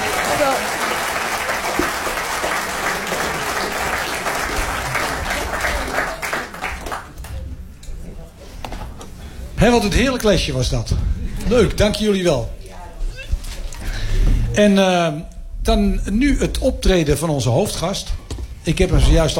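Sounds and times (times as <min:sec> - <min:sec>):
audience applause: 0:00.0 - 0:07.5
speech: 0:09.6 - 0:12.6, 0:14.6 - 0:19.3.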